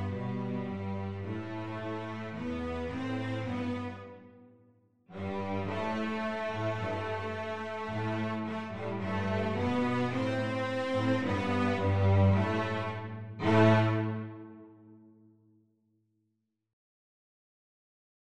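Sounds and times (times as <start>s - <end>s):
cello duet: 0.0s - 4.3s, 5.1s - 15.0s.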